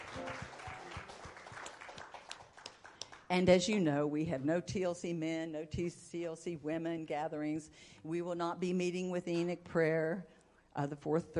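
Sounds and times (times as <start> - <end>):
audience applause: 0.0 - 3.2
speech: 3.3 - 11.3.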